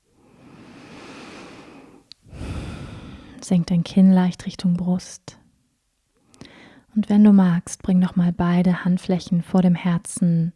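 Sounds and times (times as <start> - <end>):
deep breathing in guided yoga relaxation: 0.3 - 3.4, 6.4 - 6.9
speech: 3.4 - 5.4, 7.0 - 10.5.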